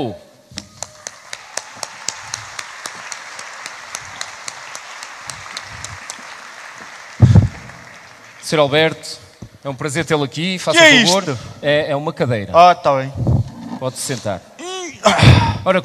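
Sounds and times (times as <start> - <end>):
speech: 0.0 - 0.2, 8.5 - 13.2, 13.8 - 15.8
audience applause: 0.6 - 9.0.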